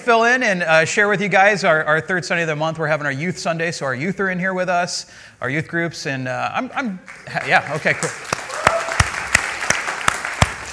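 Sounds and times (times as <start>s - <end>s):
speech: 0.0s - 8.4s
church congregation clapping for the youth group at a Youth Sunday service: 7.0s - 10.7s.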